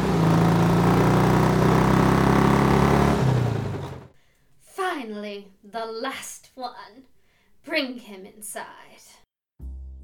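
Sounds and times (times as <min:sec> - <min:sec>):
steam bike engine running: 0:00.0 - 0:04.1
speech: 0:05.8 - 0:09.1.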